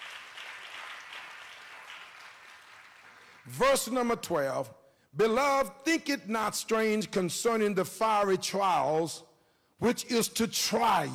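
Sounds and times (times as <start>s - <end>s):
audience hand clapping: 0.0s - 3.7s
speech: 3.4s - 11.1s.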